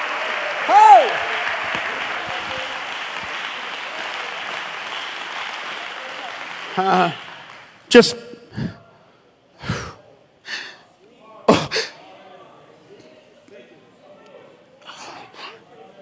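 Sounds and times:
congregation clapping hands in church: 0.0 - 8.2
speech: 0.7 - 1.4, 6.8 - 7.2, 7.9 - 8.2.

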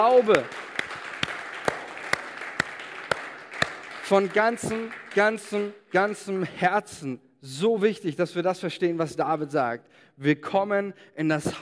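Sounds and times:
speech: 0.0 - 0.6, 4.1 - 11.6
audience applause: 0.0 - 5.7.

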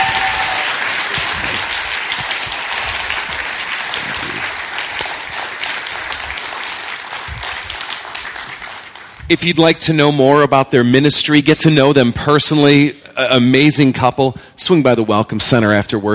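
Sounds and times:
audience applause during a church worship service: 0.0 - 9.9
speech: 9.3 - 16.1.

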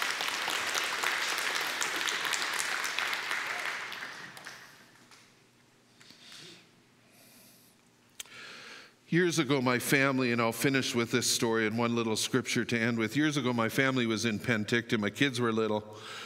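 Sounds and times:
audience clapping: 0.0 - 5.4
speech: 9.1 - 16.2.

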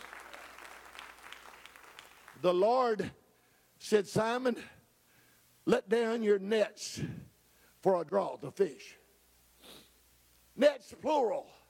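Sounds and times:
audience clapping hands: 0.0 - 2.6
speech: 2.4 - 3.2, 3.8 - 4.8, 5.6 - 9.0, 10.6 - 11.6.

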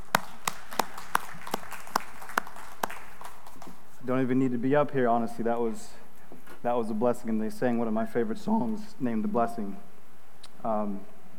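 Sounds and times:
audience clapping for worship team: 0.0 - 4.0
speech: 4.1 - 6.0, 6.6 - 9.9, 10.6 - 11.1.

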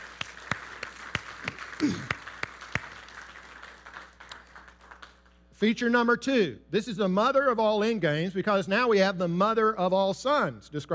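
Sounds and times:
audience applause: 0.0 - 5.3
speech: 1.8 - 2.1, 5.6 - 10.9.

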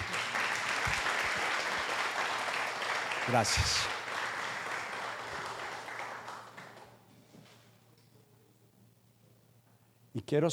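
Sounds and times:
audience applause: 0.0 - 7.0
speech: 3.3 - 4.0, 10.3 - 10.5.

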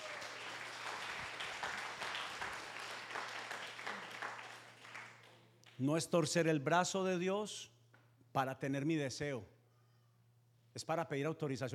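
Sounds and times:
audience applause: 0.0 - 5.3
speech: 5.8 - 7.7, 8.4 - 9.6, 10.8 - 11.7.

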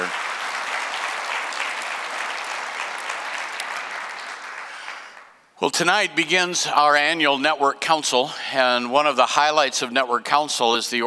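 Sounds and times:
congregation applauding at a church service to welcome a visiting superintendent: 0.0 - 5.4
speech: 5.6 - 11.0.

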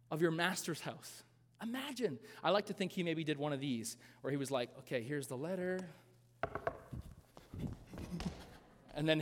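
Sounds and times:
speech: 0.1 - 6.7, 9.0 - 9.2
knocking on a door: 6.4 - 6.8.

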